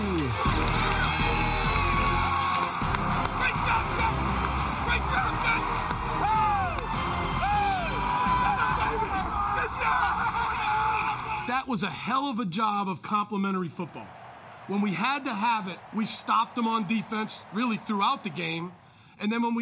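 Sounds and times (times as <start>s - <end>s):
stadium fans cheering: 0.0s - 11.8s, 13.1s - 19.5s
laughter: 8.4s - 11.5s
speech: 11.7s - 19.5s.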